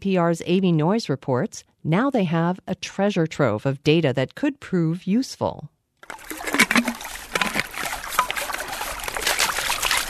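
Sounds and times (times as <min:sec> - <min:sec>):
speech: 0:00.0 - 0:06.4
water sloshing and splashing as a sample bottle is rinsed: 0:06.0 - 0:10.0.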